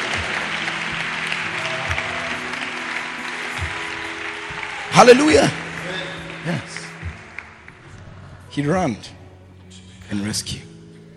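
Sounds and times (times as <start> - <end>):
audience applause: 0.0 - 8.4
speech: 5.0 - 5.6, 6.4 - 6.7, 8.6 - 9.2, 10.1 - 10.7.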